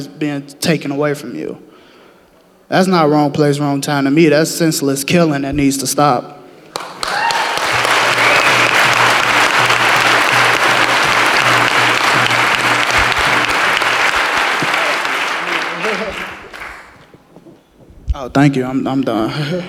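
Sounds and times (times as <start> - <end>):
speech: 0.0 - 1.7, 2.7 - 7.2, 18.2 - 19.6
crowd applauding: 6.7 - 17.3.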